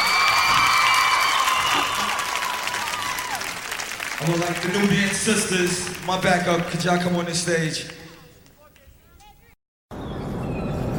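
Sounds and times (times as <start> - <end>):
crowd cheering and whooping: 0.0 - 4.9
crowd applauding: 0.0 - 8.4
speech: 4.2 - 8.0.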